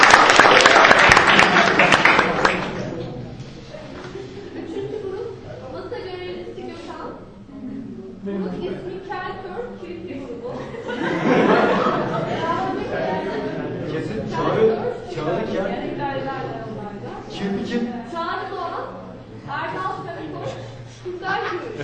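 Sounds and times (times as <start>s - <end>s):
audience applause at a competition: 0.0s - 3.1s
laughter: 3.8s - 5.9s, 10.2s - 17.3s, 20.3s - 21.8s.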